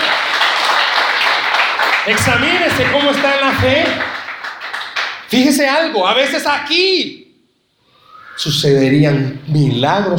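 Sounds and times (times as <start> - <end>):
audience applause: 0.0 - 5.3
speech: 2.1 - 4.2, 5.3 - 7.2, 8.4 - 10.1.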